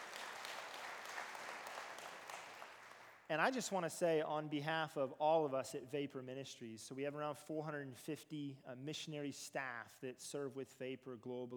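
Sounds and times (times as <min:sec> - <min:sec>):
round of applause: 0:00.0 - 0:03.3
speech: 0:03.3 - 0:11.5.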